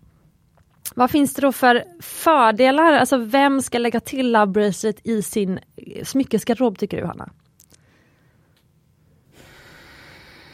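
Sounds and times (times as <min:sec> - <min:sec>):
speech: 0:01.0 - 0:07.4
deep breath: 0:07.8 - 0:10.5.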